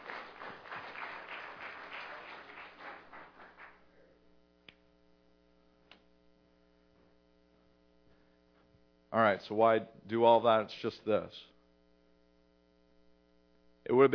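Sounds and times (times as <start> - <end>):
group applause: 0.0 - 3.9
electrical hum: 0.0 - 14.1
speech: 9.2 - 11.5, 13.9 - 14.1.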